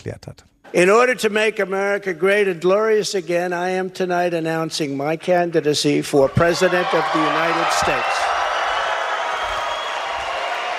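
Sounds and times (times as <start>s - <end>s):
speech: 0.0s - 8.4s
recorded crowd applause and cheering after a presidential candidacy announcement speech: 6.2s - 10.7s.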